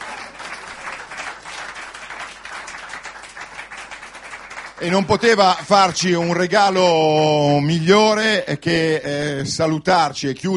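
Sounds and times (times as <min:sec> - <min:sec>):
audience applause: 0:00.0 - 0:06.2
speech: 0:04.8 - 0:10.5.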